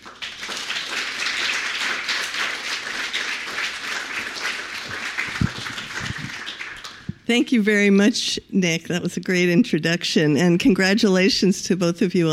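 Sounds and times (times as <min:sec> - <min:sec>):
audience applauding a lecturer: 0:00.0 - 0:07.2
speech: 0:07.3 - 0:12.3.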